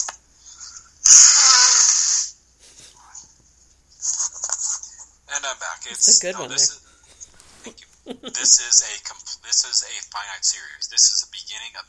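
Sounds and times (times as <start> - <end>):
person blowing their nose: 1.1 - 2.9
speech: 5.8 - 6.8, 8.1 - 11.8.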